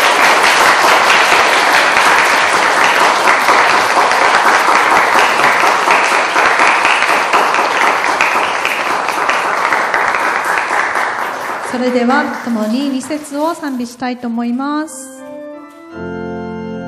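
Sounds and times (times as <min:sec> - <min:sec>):
audience applause: 0:00.0 - 0:12.8
speech: 0:11.8 - 0:15.1.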